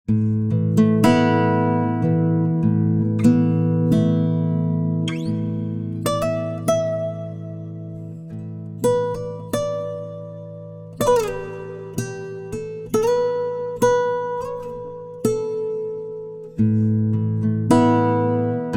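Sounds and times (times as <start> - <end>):
time-stretched guitar: 0.1 - 18.7.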